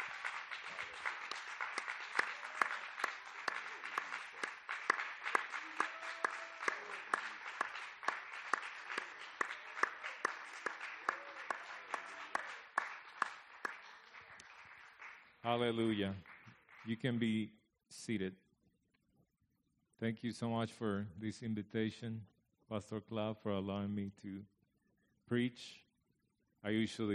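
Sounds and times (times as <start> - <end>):
loud audience hand clapping: 0.0 - 17.2
speech: 15.5 - 18.4, 20.0 - 24.5, 25.3 - 25.8, 26.6 - 27.1.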